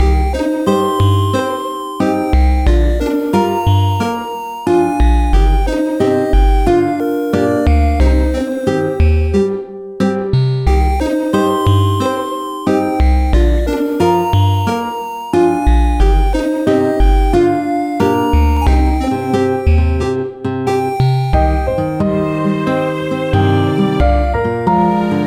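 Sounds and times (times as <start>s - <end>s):
ranch background music: 0.0s - 25.2s.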